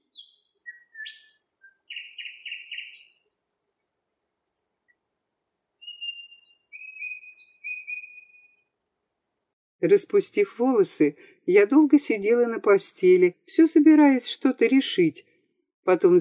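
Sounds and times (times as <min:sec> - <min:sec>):
nightingales singing: 0:00.0 - 0:03.2, 0:05.8 - 0:08.5
speech: 0:09.8 - 0:15.3, 0:15.9 - 0:16.1.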